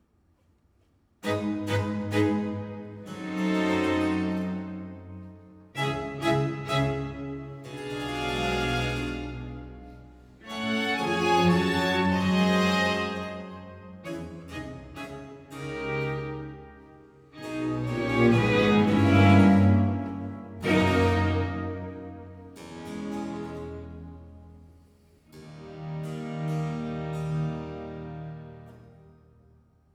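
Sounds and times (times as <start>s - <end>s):
baroque concerto grosso in C major: 1.2s - 28.9s.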